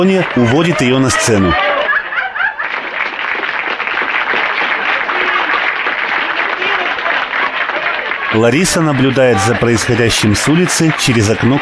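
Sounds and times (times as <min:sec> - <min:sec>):
speech: 0:00.0 - 0:01.7, 0:08.3 - 0:11.5
laughter and voices of the club audience: 0:00.0 - 0:03.0, 0:06.7 - 0:11.5
audience applause after a performance in a club: 0:00.0 - 0:11.5.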